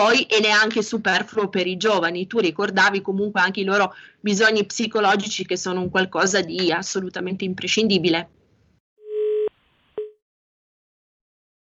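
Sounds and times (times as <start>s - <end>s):
speech: 0.0s - 8.4s
telephone line tone after a dropped call: 9.0s - 10.2s.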